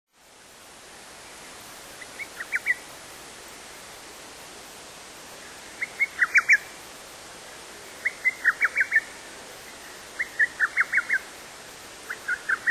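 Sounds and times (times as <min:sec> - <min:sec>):
little cuckoo giving sharp whistled notes: 0:02.0 - 0:02.8, 0:05.8 - 0:06.7, 0:08.0 - 0:09.1, 0:09.7 - 0:11.3, 0:12.1 - 0:12.6.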